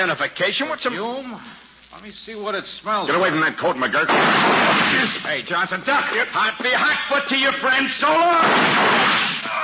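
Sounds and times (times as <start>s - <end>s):
speech: 0.0s - 9.3s
gunshots fired through a door transom: 4.0s - 5.2s, 8.4s - 9.5s.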